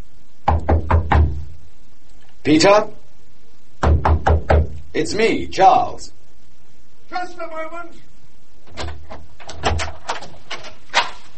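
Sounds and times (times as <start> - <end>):
sharper knocks: 0.4 - 1.5, 3.8 - 4.8
speech: 2.4 - 3.0, 5.0 - 6.2, 7.1 - 8.1
door opening: 8.6 - 11.2.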